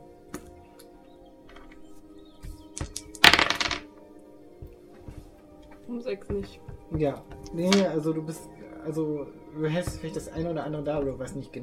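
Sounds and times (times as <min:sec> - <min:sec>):
dice being rolled: 0:02.7 - 0:03.9, 0:07.5 - 0:07.9
speech: 0:05.9 - 0:11.6.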